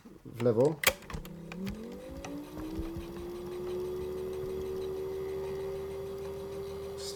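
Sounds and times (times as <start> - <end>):
speech: 0.4 - 0.9
cassette tape deck mechanical click: 0.4 - 2.4
cassette tape deck motor whine while rewinding: 0.9 - 7.1.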